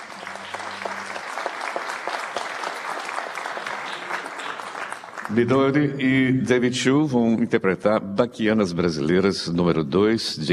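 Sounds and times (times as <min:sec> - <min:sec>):
audience applause: 0:00.0 - 0:05.7
speech: 0:05.3 - 0:10.5.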